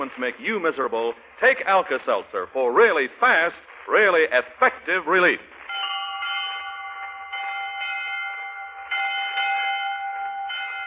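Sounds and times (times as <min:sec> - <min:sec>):
speech: 0:00.0 - 0:05.6
school bell ringing to start class: 0:05.7 - 0:10.8.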